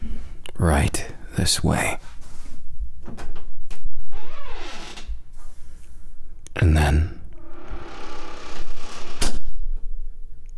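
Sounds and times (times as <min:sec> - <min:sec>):
speech: 0:00.6 - 0:02.1
office door creaking scrape: 0:03.0 - 0:05.5, 0:07.3 - 0:09.7.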